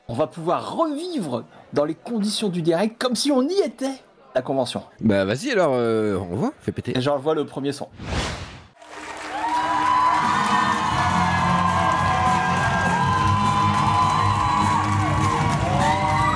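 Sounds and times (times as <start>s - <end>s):
speech: 0.1s - 8.4s
clapping: 8.8s - 16.3s
fan convention crowd cheering and screaming: 8.8s - 16.3s.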